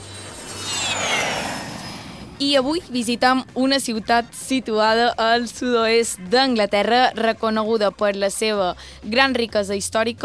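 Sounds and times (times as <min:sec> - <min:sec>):
airplane jet-engine roar sound effect: 0:00.0 - 0:05.1
high whining jet tones sliding downward: 0:00.0 - 0:05.5
speech: 0:02.4 - 0:10.2.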